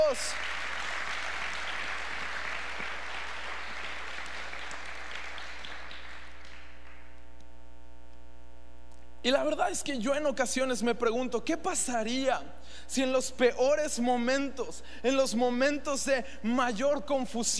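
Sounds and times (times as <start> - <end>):
loud audience applause: 0.0 - 7.1
speech: 0.1 - 0.5, 9.2 - 17.5.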